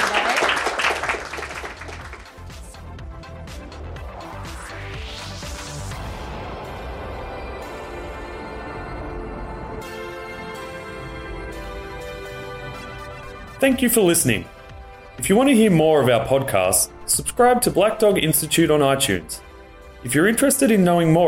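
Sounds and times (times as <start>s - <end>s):
audience applause for the panel: 0.0s - 2.6s
musical outro with a rising swept tone: 1.2s - 21.2s
speech: 13.6s - 14.6s, 15.2s - 21.2s.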